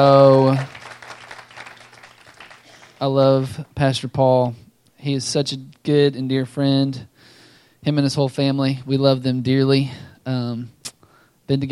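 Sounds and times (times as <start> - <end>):
speech: 0.0 - 0.7, 3.0 - 7.1, 7.8 - 10.8, 11.5 - 11.7
audience applause: 0.0 - 3.5.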